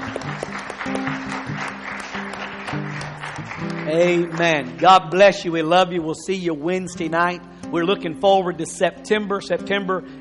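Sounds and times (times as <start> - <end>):
hand clapping: 0.0 - 5.8
speech: 3.9 - 10.2.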